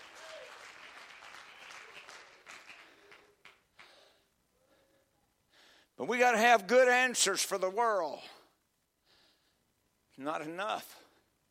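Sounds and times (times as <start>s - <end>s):
audience clapping: 0.0s - 4.1s
speech: 6.0s - 8.4s, 10.2s - 11.0s.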